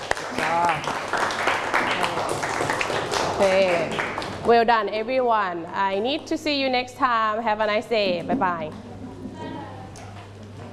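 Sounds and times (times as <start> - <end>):
students clapping their hands: 0.0 - 4.5
speech: 3.4 - 8.9.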